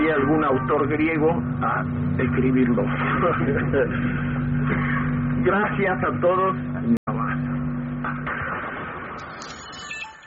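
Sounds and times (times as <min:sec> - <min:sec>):
car horn blaring: 0:00.0 - 0:01.9
street traffic noise: 0:00.0 - 0:08.4
speech: 0:00.2 - 0:07.0
short high-pitched tones: 0:09.4 - 0:10.2.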